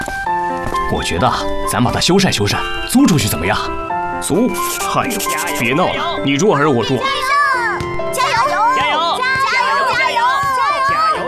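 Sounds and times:
speech: 0.9 - 7.3
children shouting and chattering while playing and roughhousing outdoors: 4.4 - 11.2.

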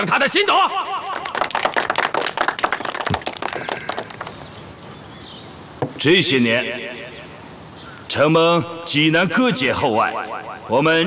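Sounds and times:
speech: 0.0 - 1.0, 6.0 - 7.2, 8.1 - 11.0
audience applause: 1.1 - 4.5.

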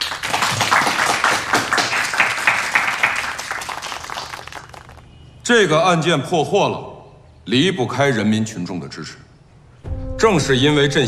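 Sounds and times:
applause: 0.0 - 5.1
speech: 5.5 - 9.3, 10.2 - 11.0.

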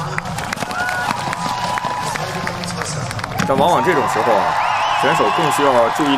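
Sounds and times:
spectators cheering at a race: 0.0 - 6.1
speech: 3.5 - 6.1.

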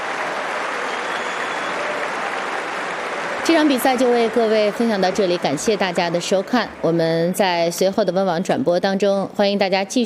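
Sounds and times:
spectators' applause at tennis match: 0.0 - 7.8
speech: 3.5 - 10.0.

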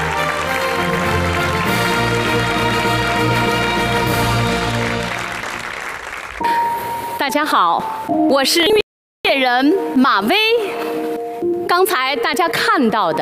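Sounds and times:
audience applause: 0.0 - 6.9
speech: 7.3 - 10.9, 11.7 - 13.1.

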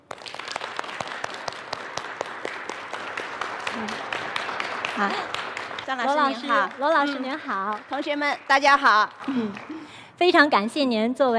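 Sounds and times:
audience applause welcoming a speaker: 0.0 - 9.9
speech: 5.0 - 11.3.

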